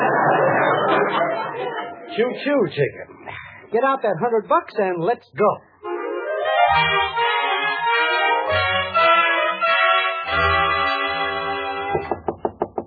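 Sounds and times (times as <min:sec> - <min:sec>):
laughter: 0:00.0 - 0:02.4
speech: 0:02.2 - 0:05.7, 0:06.8 - 0:07.3
orchestral music: 0:05.8 - 0:12.1
sharp knocks on a door: 0:11.9 - 0:12.8.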